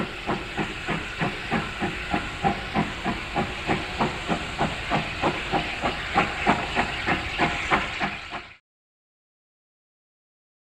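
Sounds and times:
steam train hiss: 0:00.0 - 0:08.6.

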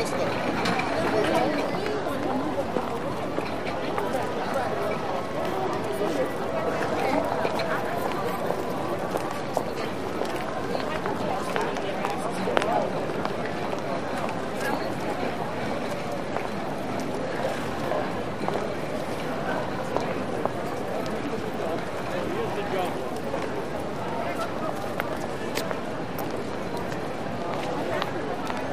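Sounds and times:
group crowd footsteps: 0:00.0 - 0:28.7.

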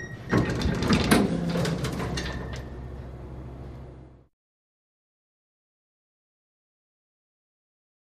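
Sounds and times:
elevator: 0:00.0 - 0:04.3.

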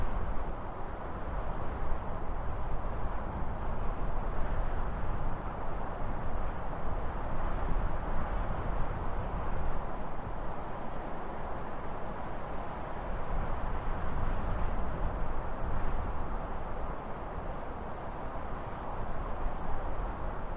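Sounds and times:
mountain wind in pine trees: 0:00.0 - 0:20.5.

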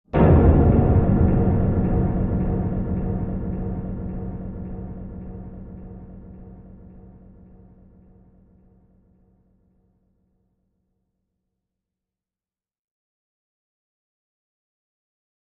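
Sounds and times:
tonal bass impacts: 0:00.1 - 0:08.4.

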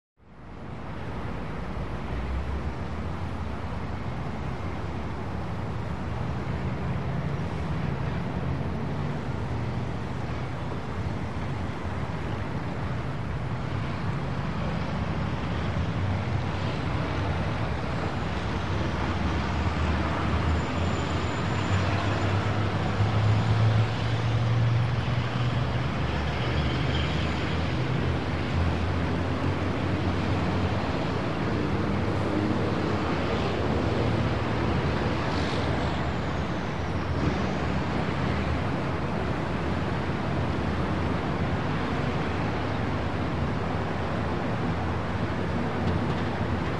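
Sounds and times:
distant highway traffic in a big city: 0:00.2 - 0:46.7.

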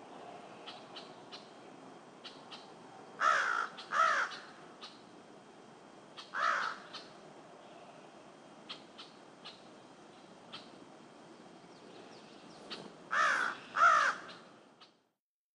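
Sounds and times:
crow cawing: 0:03.2 - 0:04.9, 0:06.2 - 0:07.1, 0:13.1 - 0:14.4.

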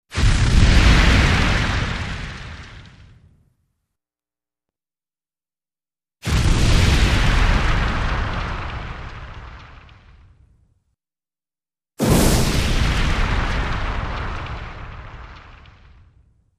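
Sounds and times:
explosive fire burst: 0:00.1 - 0:03.4, 0:06.2 - 0:10.5, 0:12.0 - 0:16.3.

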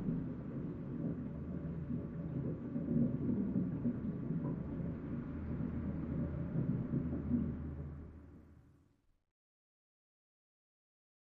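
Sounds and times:
water flowing through pipes through wall: 0:00.2 - 0:08.5.

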